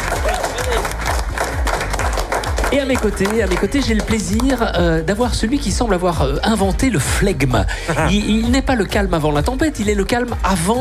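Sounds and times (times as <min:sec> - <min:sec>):
morning crowd clapping to support a show's hosts: 0:00.0 - 0:05.0
speech: 0:02.7 - 0:10.7.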